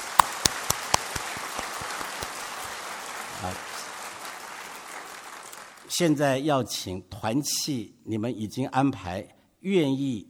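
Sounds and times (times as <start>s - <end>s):
audience applause: 0.0s - 5.9s
speech: 3.4s - 3.7s, 6.0s - 10.2s.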